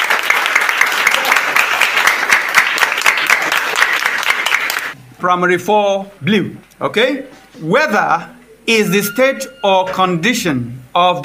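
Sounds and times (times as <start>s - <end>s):
round of applause: 0.0s - 5.0s
speech: 5.2s - 11.2s.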